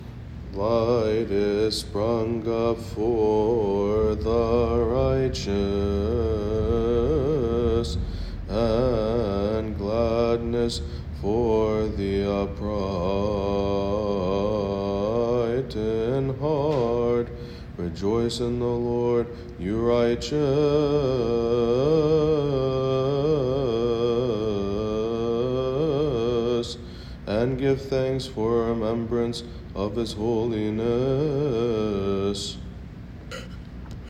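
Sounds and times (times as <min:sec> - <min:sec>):
psalm chanting: 0:00.0 - 0:34.0.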